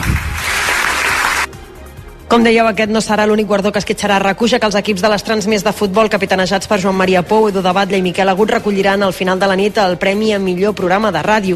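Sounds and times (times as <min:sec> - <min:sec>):
crowd applause: 0:00.0 - 0:01.5
speech: 0:02.3 - 0:11.5.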